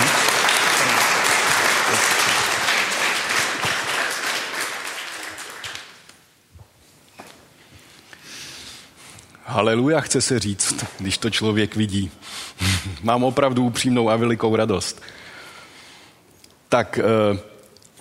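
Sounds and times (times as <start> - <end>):
audience applauding: 0.0 - 6.1
speech: 9.6 - 15.2, 16.7 - 17.5.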